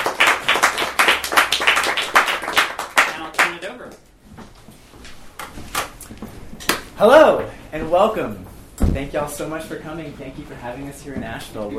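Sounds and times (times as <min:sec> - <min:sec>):
audience round of applause: 0:00.0 - 0:03.6
speech: 0:07.0 - 0:11.7.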